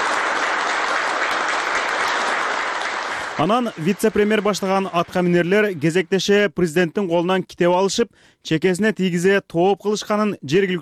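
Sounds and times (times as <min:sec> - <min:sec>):
sustained applause after Turkmen president Gurbanguly Berdimuhamedov presents his book: 0:00.0 - 0:06.1
speech: 0:03.4 - 0:10.8.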